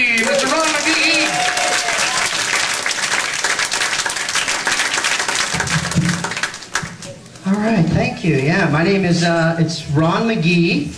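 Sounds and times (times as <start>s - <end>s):
audience applause at a comedy show welcoming a comedian: 0.0s - 7.6s
speech: 8.2s - 10.9s.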